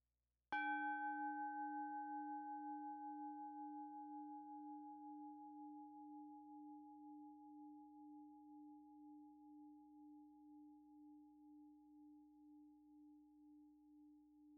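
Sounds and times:
meditation bell ringing: 0.6 - 11.6.

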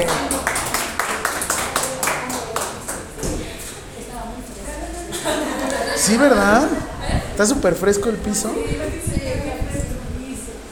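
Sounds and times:
audience applause: 0.0 - 3.1
laughter: 5.1 - 7.4
speech: 6.1 - 9.5.

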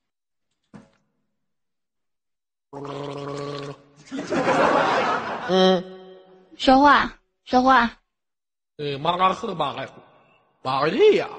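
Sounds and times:
person drinking water: 2.7 - 4.1
speech: 2.8 - 3.4, 5.5 - 5.9, 6.6 - 8.0, 8.8 - 10.0, 10.6 - 11.3
laughter: 4.0 - 5.8.

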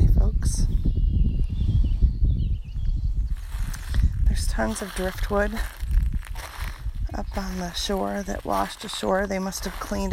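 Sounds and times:
birds: 0.1 - 10.1
footsteps on stone: 3.4 - 10.1
speech: 4.6 - 5.8, 7.2 - 10.1.

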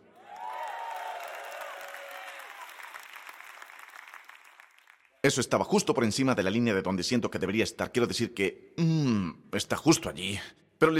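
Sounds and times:
crowd applauding: 0.0 - 5.2
crowd cheering and whooping: 0.1 - 3.2
speech: 5.2 - 10.9.

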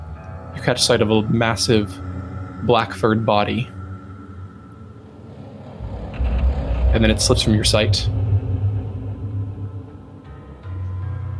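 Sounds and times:
speech: 0.7 - 3.8, 7.0 - 8.2
wolves growling: 5.0 - 10.5.

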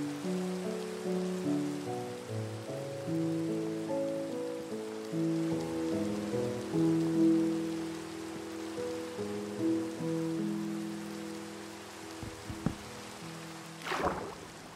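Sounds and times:
rain hissing: 0.0 - 14.7
soft sustained low melody notes: 0.0 - 14.7
short knocks: 12.2 - 13.0
crunching burst: 13.8 - 14.7.

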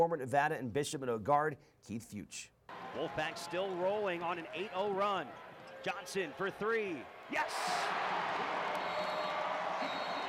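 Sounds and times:
speech: 0.0 - 8.6
crowd cheering at Lawler Event Center: 2.7 - 10.2.

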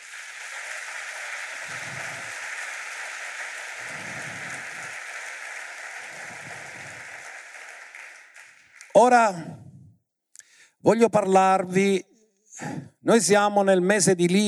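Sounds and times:
cheering: 0.0 - 9.0
crowd applause: 0.0 - 9.0
speech: 9.0 - 9.6, 10.8 - 14.4.

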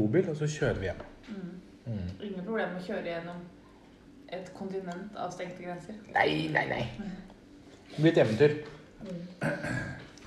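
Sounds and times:
speech: 0.0 - 3.6, 4.3 - 7.3, 7.9 - 10.0
throat clearing: 9.4 - 10.2.

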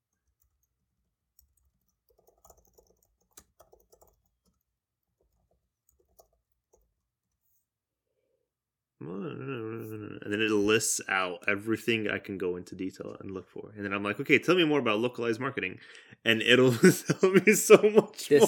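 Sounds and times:
typing on a computer keyboard: 0.0 - 7.4
speech: 9.1 - 18.4.

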